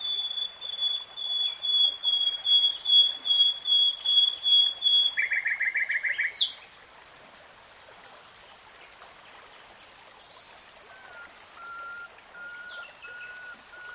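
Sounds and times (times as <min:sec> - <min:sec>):
nightingale whistling song: 0:00.0 - 0:06.6, 0:10.9 - 0:13.9.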